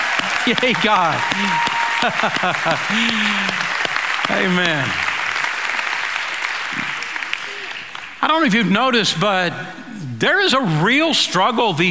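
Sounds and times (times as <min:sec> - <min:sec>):
church congregation applauding fathers during a service: 0:00.0 - 0:09.1
laughter: 0:00.3 - 0:05.0
speech: 0:00.5 - 0:03.7, 0:04.3 - 0:05.0, 0:08.2 - 0:11.8.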